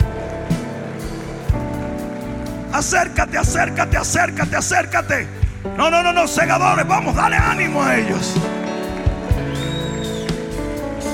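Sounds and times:
loud audience applause: 0:00.0 - 0:04.7, 0:07.1 - 0:11.1
speech: 0:02.8 - 0:08.6.

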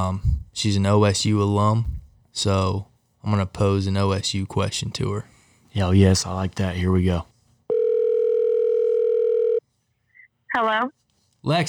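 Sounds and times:
speech: 0:00.0 - 0:07.3, 0:10.5 - 0:11.6
telephone ringing tone: 0:07.7 - 0:09.6.

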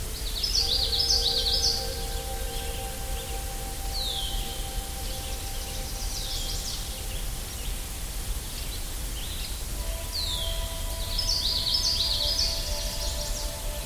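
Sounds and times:
birds singing: 0:00.0 - 0:13.8.

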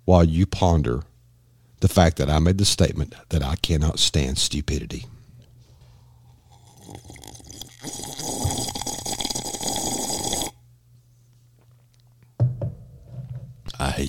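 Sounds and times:
speech: 0:00.1 - 0:01.1, 0:01.8 - 0:05.2, 0:13.9 - 0:14.0
sipping coffee: 0:06.2 - 0:10.6.

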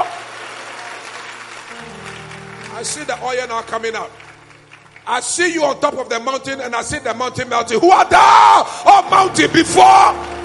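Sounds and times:
audience clapping: 0:00.0 - 0:06.0, 0:09.1 - 0:10.4
speech: 0:02.8 - 0:04.2, 0:05.1 - 0:10.3.

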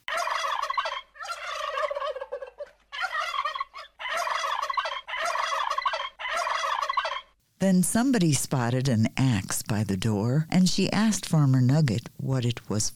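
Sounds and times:
turkeys gobbling: 0:00.0 - 0:07.4
speech: 0:07.6 - 0:12.9.

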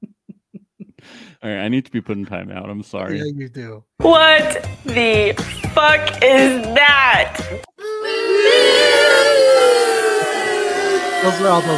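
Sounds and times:
speech: 0:01.0 - 0:07.7, 0:11.2 - 0:11.7
crowd of preschoolers booing: 0:07.8 - 0:11.7.

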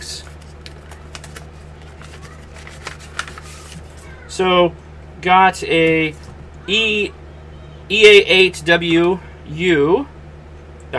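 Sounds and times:
paper envelopes of QSL cards from the Bureau rustling: 0:00.0 - 0:04.3
low steady hum: 0:00.0 - 0:10.9
speech: 0:04.4 - 0:07.2, 0:07.9 - 0:10.1.

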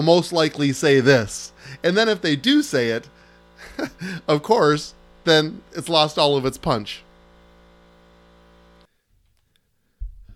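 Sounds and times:
speech: 0:00.0 - 0:07.0
air compressor running during trim work: 0:00.0 - 0:09.0
low thud: 0:10.0 - 0:10.3.

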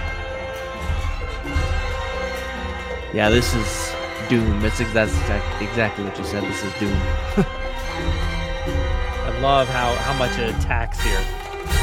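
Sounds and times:
orchestral chimes and bells ringing: 0:00.0 - 0:11.8
speech: 0:03.1 - 0:08.2, 0:09.4 - 0:11.8.

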